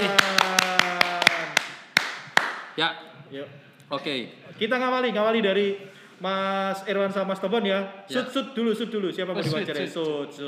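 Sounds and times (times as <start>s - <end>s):
hand claps: 0.0s - 2.8s
speech: 2.8s - 10.4s.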